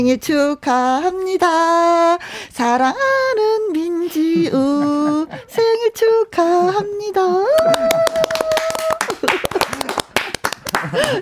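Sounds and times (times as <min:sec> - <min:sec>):
speech: 0:00.0 - 0:08.4, 0:11.0 - 0:11.2
person singing a sustained note: 0:00.0 - 0:09.0
hand clapping: 0:07.5 - 0:11.2.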